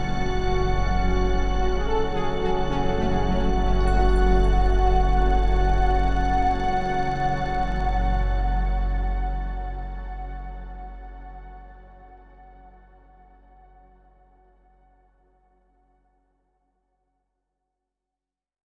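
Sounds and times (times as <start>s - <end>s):
ambient music: 0.0s - 13.8s.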